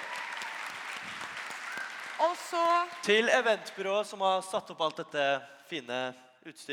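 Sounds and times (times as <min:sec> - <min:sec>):
audience applause: 0:00.0 - 0:03.9
speech: 0:02.2 - 0:06.7.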